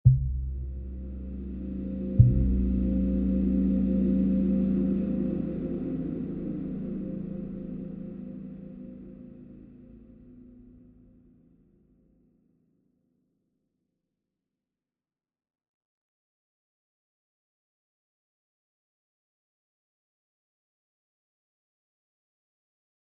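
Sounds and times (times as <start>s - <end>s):
tension music: 0.1s - 11.0s.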